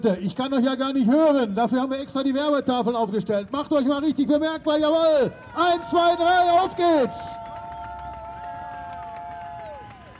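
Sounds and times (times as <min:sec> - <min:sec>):
speech: 0:00.0 - 0:07.4
spectators clapping and cheering: 0:04.7 - 0:10.1.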